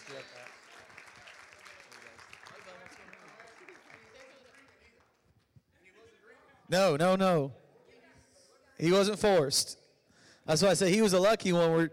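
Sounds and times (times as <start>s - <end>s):
crowd applauding: 0.0s - 5.2s
speech: 6.7s - 7.6s, 8.8s - 9.8s, 10.4s - 11.9s.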